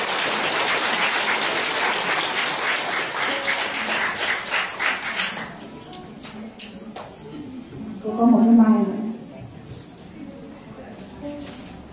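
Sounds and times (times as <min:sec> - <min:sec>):
audience applause: 0:00.0 - 0:05.6
speech: 0:08.2 - 0:08.8.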